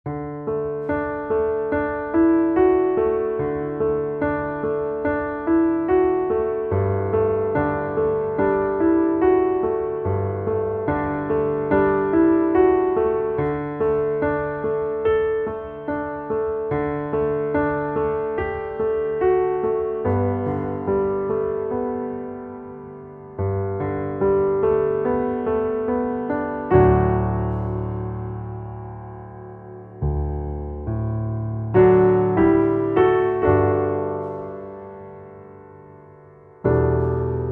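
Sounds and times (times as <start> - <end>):
piano underscore: 0.0 - 37.4.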